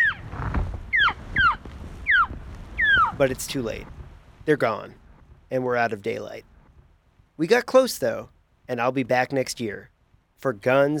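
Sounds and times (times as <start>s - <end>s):
hunter's elk call: 0.0s - 0.3s, 0.9s - 3.2s
wind rumbling: 0.0s - 8.7s
speech: 3.2s - 6.5s, 7.4s - 10.9s.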